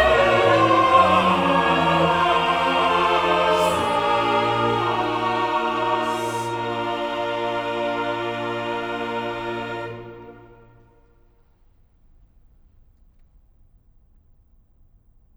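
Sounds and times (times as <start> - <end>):
choir singing: 0.0 - 11.1.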